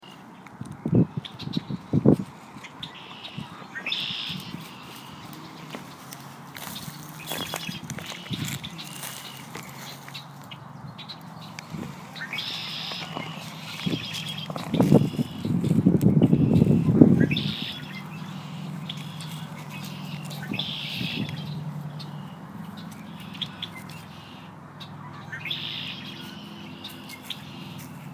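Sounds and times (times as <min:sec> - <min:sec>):
birds singing: 0:00.0 - 0:28.1.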